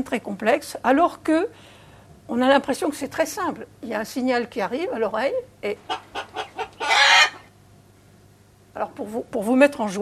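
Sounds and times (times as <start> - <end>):
speech: 0.0 - 6.4, 8.8 - 10.0
hen cackling after laying an egg: 5.9 - 7.5.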